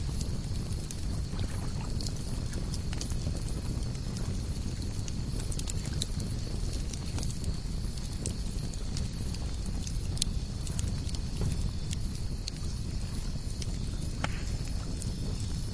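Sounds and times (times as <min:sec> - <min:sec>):
fire at a lakeside camp: 0:00.0 - 0:15.7.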